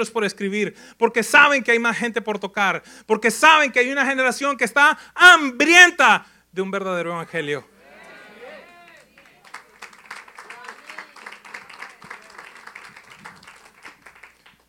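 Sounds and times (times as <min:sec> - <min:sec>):
speech: 0:00.0 - 0:07.7
applause: 0:08.6 - 0:14.6.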